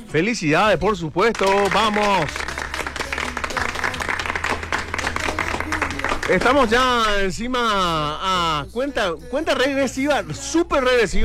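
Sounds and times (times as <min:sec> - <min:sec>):
speech: 0:00.1 - 0:02.4, 0:06.3 - 0:11.2
studio audience applause in a Radio Disney studio: 0:01.2 - 0:07.2.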